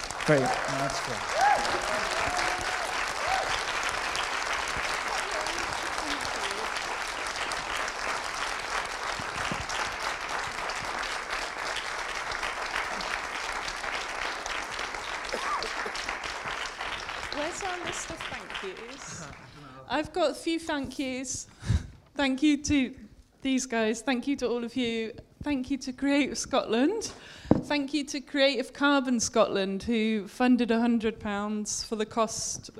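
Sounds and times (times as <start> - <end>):
audience applause: 0.0 - 19.7
speech: 0.3 - 2.5, 20.2 - 21.6, 22.2 - 32.7
laughter: 5.0 - 6.7, 15.3 - 16.2.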